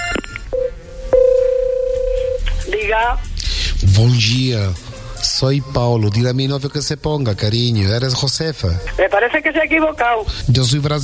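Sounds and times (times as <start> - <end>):
short electronic tone: 0.0 - 2.5
telephone ringing: 0.0 - 2.7
speech: 2.9 - 3.3, 3.9 - 11.0.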